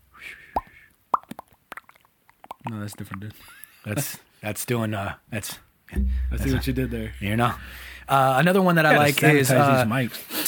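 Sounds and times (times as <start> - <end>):
voice imitating water dripping with mouth plops: 0.6 - 3.3
speech: 2.7 - 10.4.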